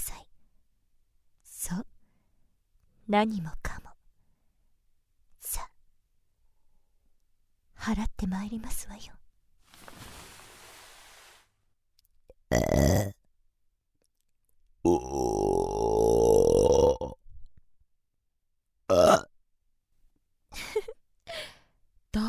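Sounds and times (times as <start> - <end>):
speech: 3.1 - 3.7, 7.9 - 9.2, 12.5 - 13.2
young woman burping: 14.9 - 17.2, 18.9 - 19.3.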